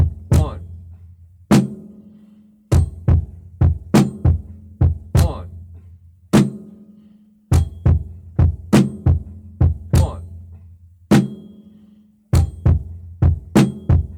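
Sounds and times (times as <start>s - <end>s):
drum beat: 0.0s - 0.8s, 2.7s - 5.6s, 7.5s - 10.4s, 12.4s - 14.1s.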